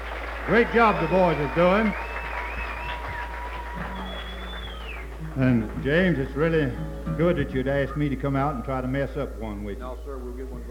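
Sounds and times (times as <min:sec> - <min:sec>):
applause: 0:00.0 - 0:06.4
speech: 0:00.5 - 0:02.1, 0:05.4 - 0:10.6.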